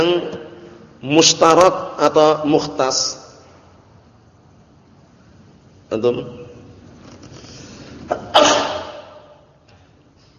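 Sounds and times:
speech: 0:00.0 - 0:03.2, 0:05.9 - 0:06.4
sneeze: 0:08.1 - 0:09.3.

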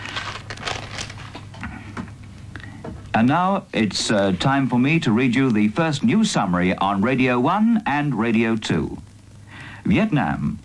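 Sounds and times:
rustling of a paper script: 0:00.0 - 0:01.7
speech: 0:03.2 - 0:09.1, 0:09.8 - 0:10.6.

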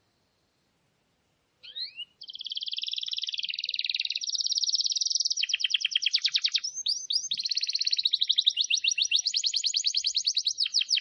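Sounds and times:
canary song: 0:01.6 - 0:11.0.

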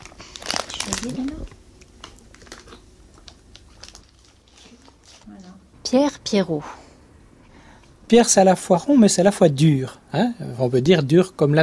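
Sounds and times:
fruit-flavored sugar-coated candy being crunched: 0:00.0 - 0:05.6
speech: 0:00.9 - 0:01.6, 0:05.3 - 0:06.8, 0:08.1 - 0:11.6.

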